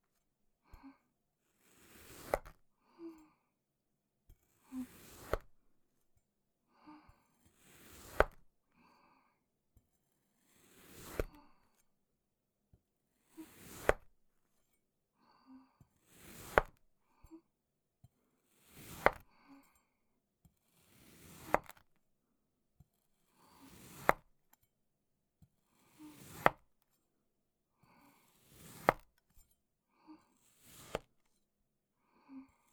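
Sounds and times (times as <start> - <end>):
cutting sand clay: 1.6 - 2.6, 4.8 - 5.5, 7.6 - 8.4, 10.4 - 11.4, 13.4 - 14.1, 16.0 - 16.8, 18.6 - 19.3, 20.7 - 21.9, 23.4 - 24.4, 25.8 - 26.7, 28.2 - 29.2, 30.4 - 31.2.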